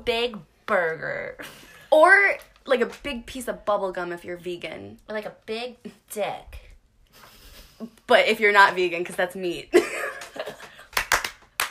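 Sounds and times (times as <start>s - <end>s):
speech: 0.0s - 10.0s
hands clapping as a drum roll: 10.1s - 11.6s.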